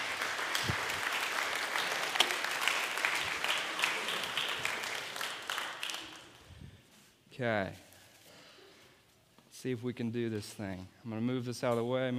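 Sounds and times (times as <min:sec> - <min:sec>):
audience applause: 0:00.0 - 0:06.4
speech: 0:07.4 - 0:07.9, 0:09.6 - 0:12.1.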